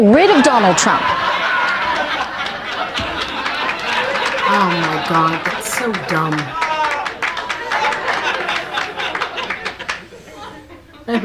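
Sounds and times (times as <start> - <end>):
speech: 0.0 - 1.3, 4.5 - 6.6, 11.1 - 11.2
crowd applause: 0.0 - 11.2
laughter: 0.0 - 11.2
murmur of voices: 0.0 - 11.2.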